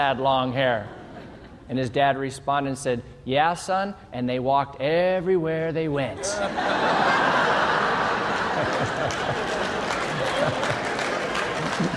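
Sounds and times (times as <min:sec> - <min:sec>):
speech: 0:00.0 - 0:01.0, 0:01.7 - 0:07.7
laughter: 0:00.0 - 0:01.7, 0:06.2 - 0:11.9
audience clapping: 0:07.4 - 0:11.9.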